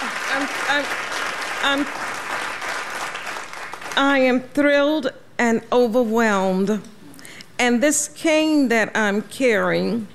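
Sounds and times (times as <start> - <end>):
audience standing ovation applause: 0.0 - 4.0
speech: 0.4 - 2.4, 4.0 - 6.9, 7.6 - 10.1.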